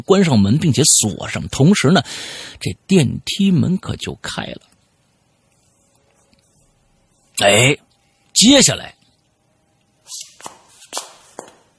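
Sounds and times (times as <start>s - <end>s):
speech: 0.0s - 4.7s, 7.4s - 7.8s, 8.4s - 9.0s
high-heel footsteps walking: 10.2s - 11.7s.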